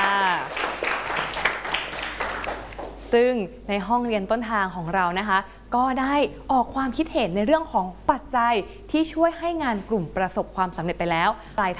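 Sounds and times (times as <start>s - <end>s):
classroom applause for fellow students: 0.0s - 3.0s
speech: 3.1s - 11.7s.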